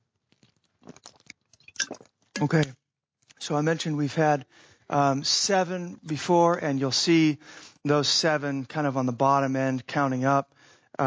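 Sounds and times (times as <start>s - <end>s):
swallowing: 0.3s - 2.5s
person sipping water: 0.3s - 2.6s
speech: 2.4s - 2.8s, 3.4s - 11.0s.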